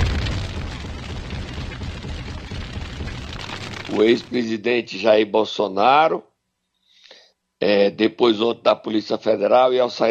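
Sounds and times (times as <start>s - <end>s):
bomb explosion sound effect: 0.0s - 4.6s
speech: 3.9s - 6.3s, 7.6s - 10.1s.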